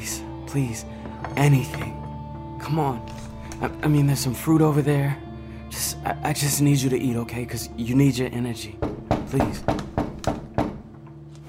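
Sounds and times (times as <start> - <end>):
speech: 0.5 - 2.0, 2.6 - 5.2, 5.8 - 9.8
knocks on the front door: 8.8 - 11.0.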